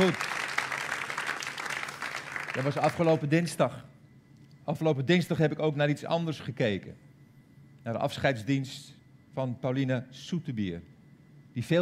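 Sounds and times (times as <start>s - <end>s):
speech: 0.0s - 0.3s, 2.6s - 3.9s, 4.7s - 7.1s, 7.8s - 10.9s, 11.6s - 11.7s
audience applause: 0.0s - 3.2s.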